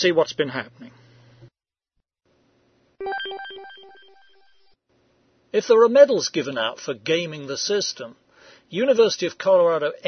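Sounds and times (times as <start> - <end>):
speech: 0.0 - 1.0, 5.5 - 10.0
segment-opening electronic beep tones: 3.0 - 4.7.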